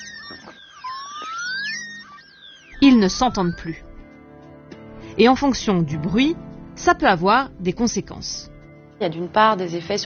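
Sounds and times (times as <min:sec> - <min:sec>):
underwater sonar pinging: 0:00.0 - 0:04.6
speech: 0:02.8 - 0:03.9, 0:05.2 - 0:10.0.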